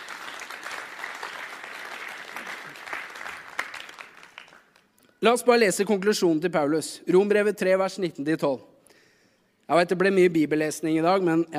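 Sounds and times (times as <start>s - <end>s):
audience applause: 0.0s - 4.8s
speech: 5.2s - 8.7s, 9.7s - 11.5s.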